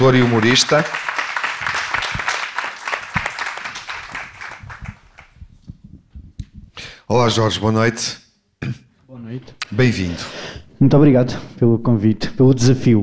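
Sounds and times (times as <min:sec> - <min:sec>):
speech: 0:00.0 - 0:01.2, 0:07.1 - 0:08.8, 0:09.8 - 0:13.0
audience applause: 0:00.0 - 0:05.5.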